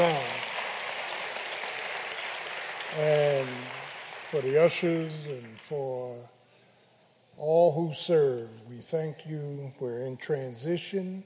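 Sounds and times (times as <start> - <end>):
choir hand clap: 0.0 - 5.7
speech: 2.9 - 3.7, 4.3 - 6.4, 7.4 - 11.2.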